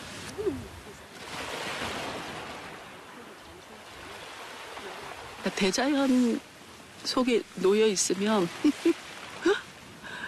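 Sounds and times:
waves and water crashing below: 0:00.0 - 0:10.2
speech: 0:05.4 - 0:09.0.

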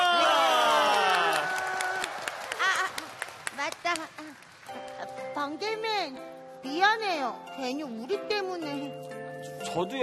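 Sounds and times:
crowd cheering and whooping: 0:00.0 - 0:03.1
hand clapping: 0:00.9 - 0:05.2
speech: 0:07.0 - 0:10.0.

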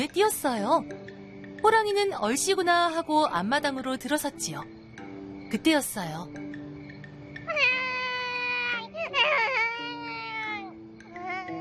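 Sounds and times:
speech: 0:00.0 - 0:04.8, 0:05.5 - 0:06.4
baby crying: 0:07.5 - 0:11.5.

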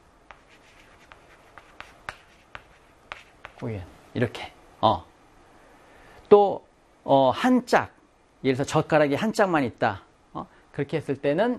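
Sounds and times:
writing on a board: 0:00.3 - 0:03.7
speech: 0:03.6 - 0:05.1, 0:06.3 - 0:11.5.

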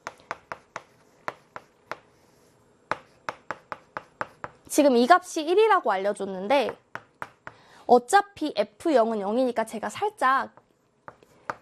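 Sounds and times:
equation written by hand during a maths lesson: 0:00.0 - 0:04.7, 0:10.6 - 0:11.6
speech: 0:04.7 - 0:06.8, 0:07.9 - 0:10.6.

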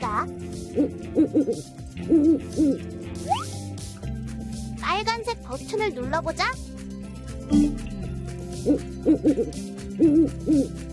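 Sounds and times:
speech: 0:00.2 - 0:03.6, 0:04.9 - 0:06.6, 0:08.6 - 0:10.9
owl hooting: 0:00.6 - 0:02.9, 0:08.6 - 0:10.8.

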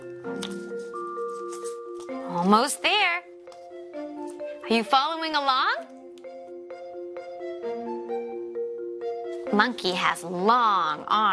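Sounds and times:
tonal music: 0:00.0 - 0:11.3
paper being folded: 0:00.4 - 0:02.1
speech: 0:02.4 - 0:03.1, 0:04.7 - 0:05.9, 0:09.5 - 0:11.3.

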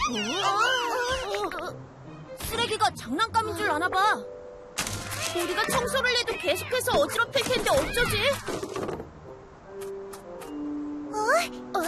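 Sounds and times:
cats meowing: 0:00.0 - 0:01.4, 0:05.1 - 0:08.6
speech: 0:02.6 - 0:04.4, 0:05.3 - 0:09.0, 0:11.3 - 0:11.8.

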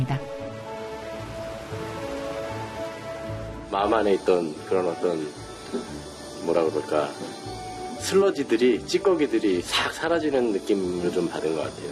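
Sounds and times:
sea waves washing ashore: 0:00.4 - 0:03.7
speech: 0:03.7 - 0:11.8.

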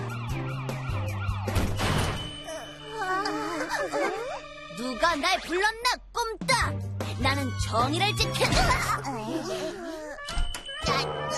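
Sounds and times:
police car siren: 0:00.0 - 0:01.8
speech: 0:03.8 - 0:11.3.

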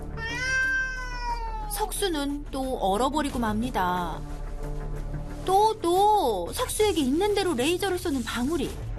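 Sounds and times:
cat growling threateningly: 0:00.2 - 0:01.7
speech: 0:01.8 - 0:04.8, 0:05.5 - 0:08.9.

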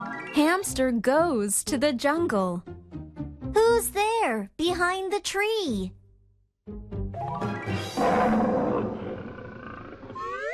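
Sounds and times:
speech: 0:00.4 - 0:02.8, 0:03.8 - 0:06.0, 0:06.7 - 0:08.6
tiger roaring: 0:08.0 - 0:10.3.

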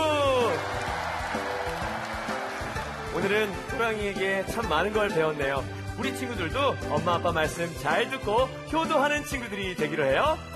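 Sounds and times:
audience applause: 0:00.1 - 0:04.2
speech: 0:03.2 - 0:10.5.

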